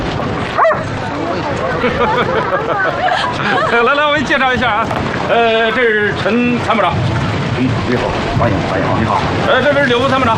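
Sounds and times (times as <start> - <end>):
dog barking: 0.5 - 0.9
laughter: 1.6 - 4.5
speech: 1.8 - 10.3.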